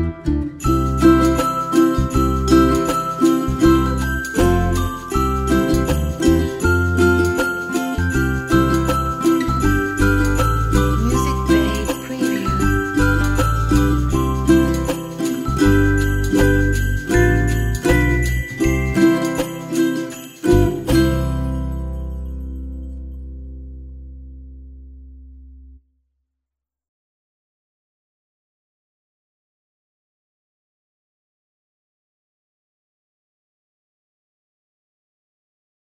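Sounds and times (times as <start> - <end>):
ukulele Christmas tune: 0.0 - 25.2.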